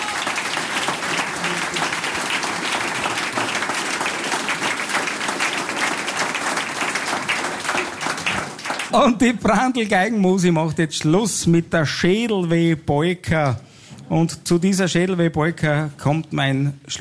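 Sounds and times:
audience applause: 0:00.0 - 0:09.1
speech: 0:08.9 - 0:16.9.

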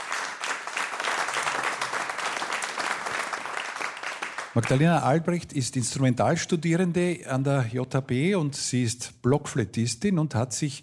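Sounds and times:
concert audience applause: 0:00.0 - 0:04.9
speech: 0:04.6 - 0:10.8.

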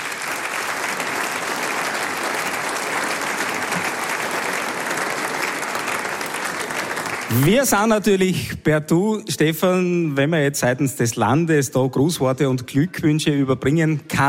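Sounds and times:
audience applause: 0:00.0 - 0:08.1
speech: 0:07.3 - 0:14.2.

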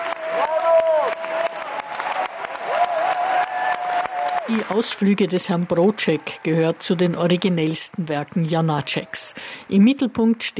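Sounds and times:
opera audience applauding: 0:00.0 - 0:07.7
speech: 0:04.5 - 0:10.5.

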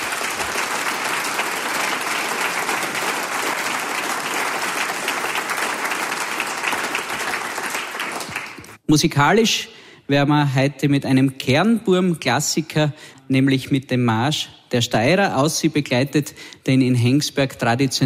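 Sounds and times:
audience applause: 0:00.0 - 0:08.8
speech: 0:08.9 - 0:18.0.

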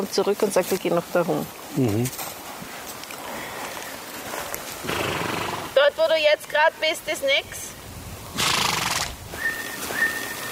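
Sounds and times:
speech: 0:00.0 - 0:02.3, 0:06.2 - 0:07.8
horse neighing: 0:04.8 - 0:05.8, 0:08.4 - 0:09.2.

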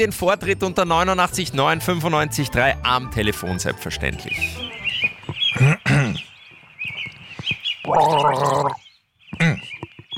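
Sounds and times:
speech: 0:00.0 - 0:06.3, 0:07.9 - 0:08.8
person gargling a short tune: 0:07.9 - 0:08.8.

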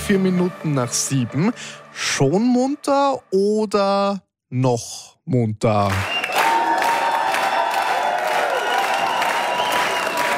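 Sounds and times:
speech: 0:00.1 - 0:06.2
applause: 0:05.8 - 0:10.3
crowd cheering: 0:05.8 - 0:10.3.

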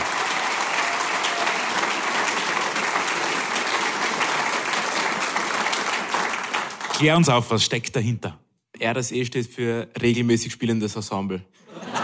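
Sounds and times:
audience applause: 0:00.0 - 0:07.4
speech: 0:07.0 - 0:11.6
laughter: 0:11.6 - 0:12.0.

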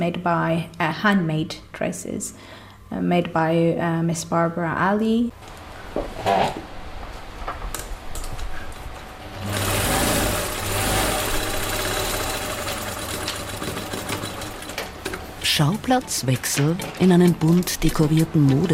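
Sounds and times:
speech: 0:00.0 - 0:06.7, 0:15.6 - 0:18.7
sewing machine running: 0:09.3 - 0:18.7.

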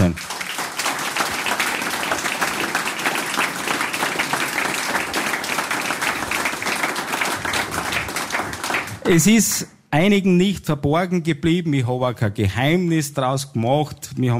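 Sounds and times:
audience applause: 0:00.0 - 0:09.3
speech: 0:09.1 - 0:14.3.

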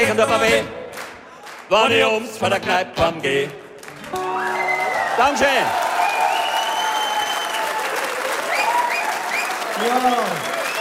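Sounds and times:
speech: 0:00.0 - 0:00.8, 0:01.7 - 0:04.6, 0:05.2 - 0:05.8, 0:09.8 - 0:10.5
audience applause: 0:03.8 - 0:10.8
cheers and whistles: 0:04.2 - 0:10.8.

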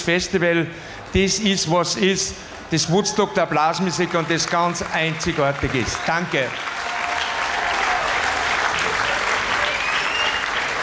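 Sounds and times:
speech: 0:00.0 - 0:06.9
audience applause: 0:02.6 - 0:10.8.

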